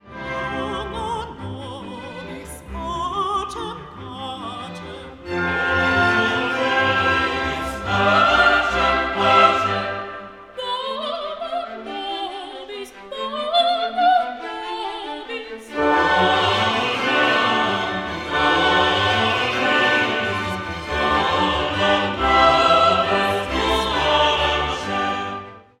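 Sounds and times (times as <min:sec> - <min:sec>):
waltz: 0:00.0 - 0:25.7.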